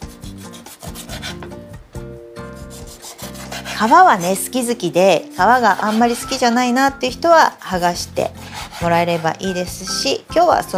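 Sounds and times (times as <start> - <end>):
knife cutting salmon fillets into pieces: 0.0 - 1.6, 2.5 - 4.6, 5.2 - 6.5, 8.3 - 9.8
speech: 3.8 - 10.7.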